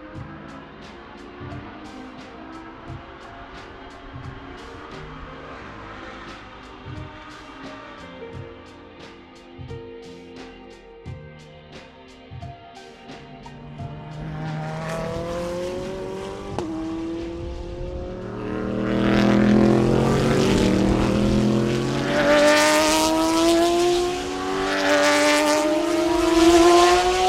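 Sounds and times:
racing car engines during Rolex 24 At Daytona qualifying: 0:00.0 - 0:08.8, 0:13.4 - 0:27.2
race cars revving and sweeping past: 0:00.5 - 0:08.1, 0:13.5 - 0:27.2.

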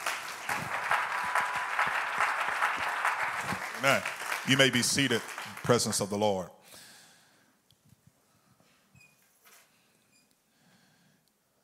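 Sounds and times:
audience clapping hands: 0:00.0 - 0:06.3
speech: 0:03.8 - 0:06.6.

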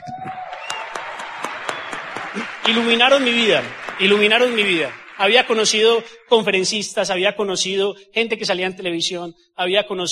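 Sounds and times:
audience applause: 0:00.0 - 0:06.5
speech: 0:02.4 - 0:10.1.

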